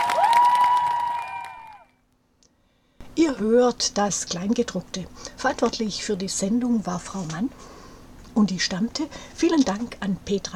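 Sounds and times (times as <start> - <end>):
audience applause and cheering: 0.0 - 1.9
speech: 3.2 - 7.8, 8.4 - 10.5.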